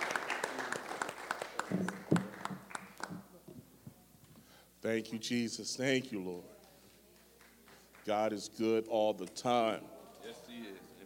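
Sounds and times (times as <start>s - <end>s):
audience clapping hands in praise: 0.0s - 3.4s, 7.1s - 8.4s
speech: 4.8s - 6.6s, 8.0s - 10.8s.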